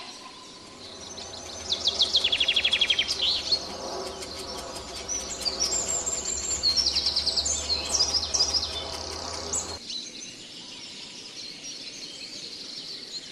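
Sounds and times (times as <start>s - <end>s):
long-tailed shrike song: 0.1s - 9.8s.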